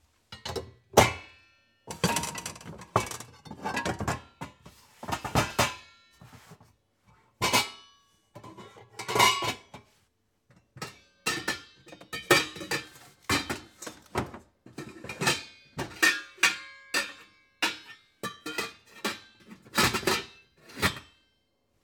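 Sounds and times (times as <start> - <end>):
metal pots: 1.9 - 5.9, 7.4 - 7.8, 8.4 - 9.9, 10.8 - 21.1.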